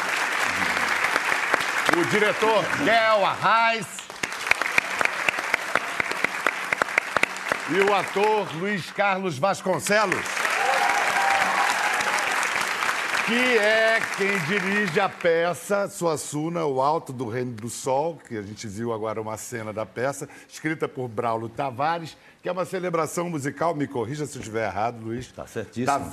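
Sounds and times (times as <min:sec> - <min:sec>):
audience applause: 0:00.0 - 0:15.5
speech: 0:01.9 - 0:04.0, 0:07.7 - 0:10.4, 0:13.3 - 0:26.1.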